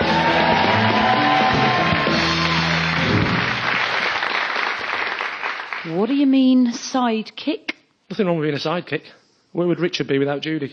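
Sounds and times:
studio audience applause and yells greeting a sidekick at a comedy show: 0:00.0 - 0:05.7
speech: 0:06.0 - 0:10.7.

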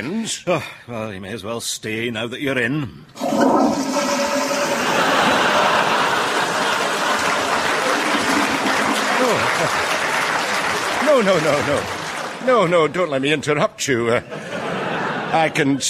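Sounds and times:
speech: 0:00.0 - 0:04.2, 0:09.2 - 0:09.9, 0:11.1 - 0:14.5, 0:15.3 - 0:15.8
vintage toilet flush: 0:03.2 - 0:10.8
laughter: 0:04.4 - 0:12.2, 0:13.9 - 0:15.8.

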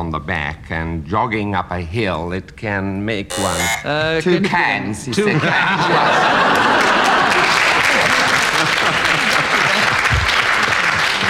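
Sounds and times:
speech: 0:00.0 - 0:07.1
laughter: 0:04.2 - 0:11.2
studio audience clapping: 0:06.2 - 0:11.2.

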